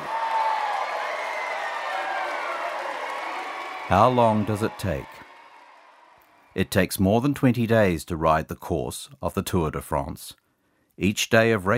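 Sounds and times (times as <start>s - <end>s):
roadside spectators clapping: 0.0s - 6.7s
speech: 3.9s - 5.3s, 6.6s - 10.4s, 11.0s - 11.7s.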